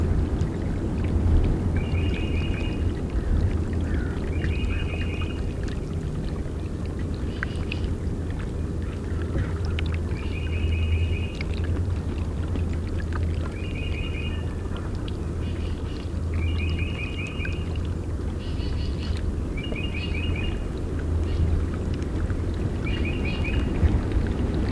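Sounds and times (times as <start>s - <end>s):
Mississippi water: 0.0s - 24.7s.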